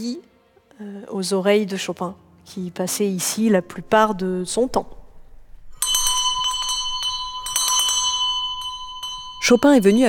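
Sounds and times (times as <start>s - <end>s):
speech: 0.0s - 5.0s, 9.5s - 10.0s
bell rung to summon a servant: 5.7s - 10.0s.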